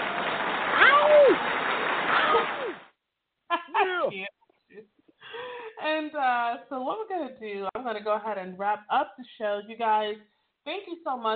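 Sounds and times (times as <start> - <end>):
round of applause: 0.0 - 2.9
speech: 6.2 - 11.3.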